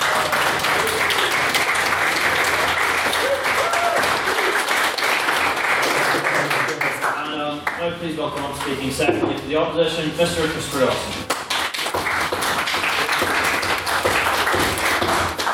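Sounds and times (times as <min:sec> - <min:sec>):
audience applause: 0:00.0 - 0:07.6, 0:11.3 - 0:15.5
speech: 0:08.1 - 0:11.3.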